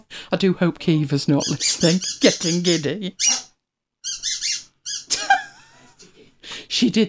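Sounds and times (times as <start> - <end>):
speech: 0.3 - 3.4, 6.8 - 7.0
squeaky rubber chicken dog toy squawking: 1.4 - 5.2
laughter: 5.1 - 6.4.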